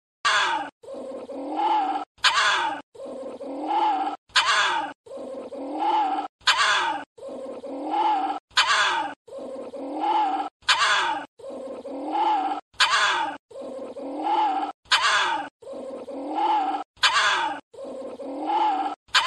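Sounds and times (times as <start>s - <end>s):
small Indian civet moaning: 0.3s - 19.2s.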